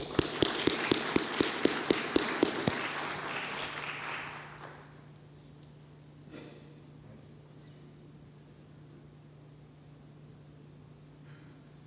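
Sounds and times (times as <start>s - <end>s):
hand claps greeting a visiting speaker at a church service: 0.0s - 5.0s.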